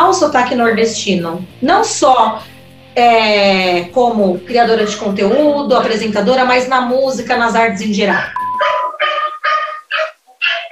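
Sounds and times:
speech: 0.1s - 8.8s
dog barking: 4.7s - 6.0s, 8.1s - 10.7s.

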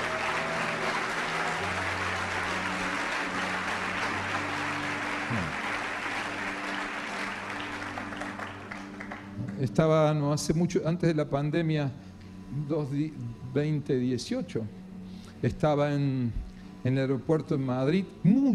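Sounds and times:
audience applauding: 0.0s - 9.9s
speech: 9.6s - 14.8s, 15.4s - 18.5s.

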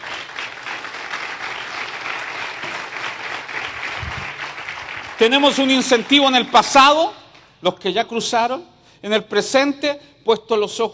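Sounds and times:
audience applause: 0.0s - 7.0s
speech: 5.2s - 10.9s.

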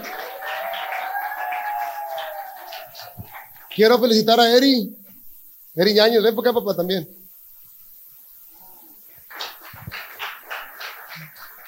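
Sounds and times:
audience applauding: 0.0s - 4.2s, 9.2s - 11.6s
speech: 3.8s - 5.0s, 5.8s - 7.2s.

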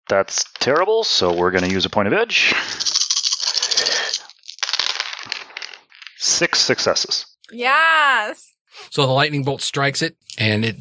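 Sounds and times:
speech: 0.1s - 3.0s, 6.4s - 10.7s
dice rolling across a hard surface: 2.8s - 6.2s.

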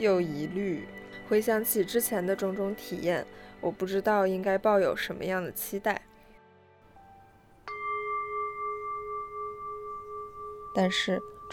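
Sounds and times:
speech: 0.0s - 6.1s, 10.8s - 11.5s
singing bowl struck: 7.0s - 11.5s.

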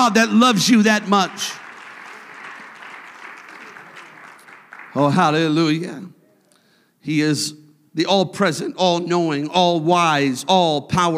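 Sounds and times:
speech: 0.0s - 1.6s, 5.0s - 6.2s, 7.0s - 11.1s
audience clapping hands: 0.0s - 5.9s.

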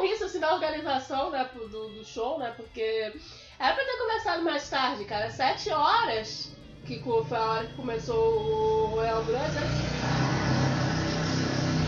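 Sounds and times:
speech: 0.4s - 10.3s
motorcycle passing by with sputtering engine: 4.2s - 11.8s.

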